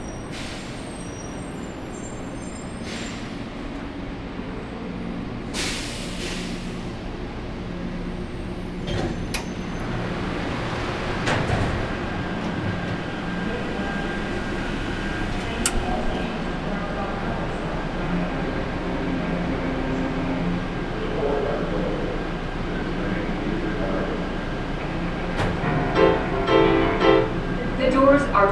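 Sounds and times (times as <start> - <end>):
airport people mover train arriving at platform at Concourse C: 0.0 - 28.5
faint voices: 12.9 - 25.6.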